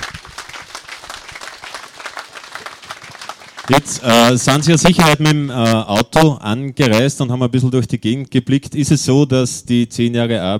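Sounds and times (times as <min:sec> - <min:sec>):
audience applause: 0:00.0 - 0:04.9
speech: 0:03.7 - 0:10.5.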